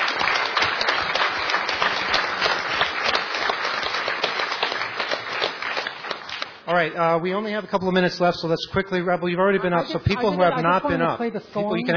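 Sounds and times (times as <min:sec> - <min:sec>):
round of applause from audience: 0:00.0 - 0:06.6
speech: 0:06.7 - 0:11.9.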